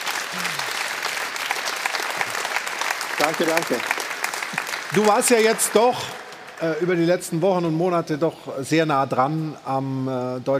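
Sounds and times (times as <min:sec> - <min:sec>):
audience applause: 0:00.0 - 0:07.6
speech: 0:03.2 - 0:04.0, 0:04.9 - 0:10.5.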